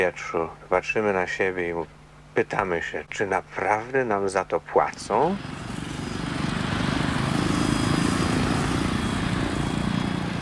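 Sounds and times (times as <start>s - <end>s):
speech: 0.0s - 5.6s
small propeller plane that will tow a glider droning at a small airfield: 5.1s - 10.4s.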